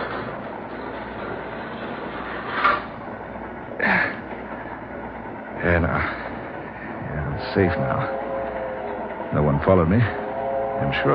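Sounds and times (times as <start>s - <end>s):
heavy metal boxcar door sliding and banging shut: 0.0s - 3.0s
moving train rumbling: 0.0s - 11.1s
speech: 5.6s - 6.2s, 7.6s - 8.2s, 9.3s - 10.2s, 10.8s - 11.1s.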